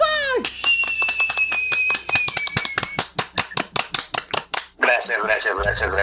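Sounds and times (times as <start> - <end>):
applause: 0.4 - 4.8
speech: 5.0 - 6.0.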